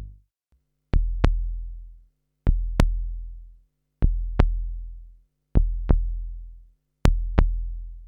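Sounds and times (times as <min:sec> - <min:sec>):
drums: 0:01.0 - 0:01.6, 0:02.5 - 0:03.2, 0:04.0 - 0:04.8, 0:05.6 - 0:06.2, 0:07.1 - 0:07.7.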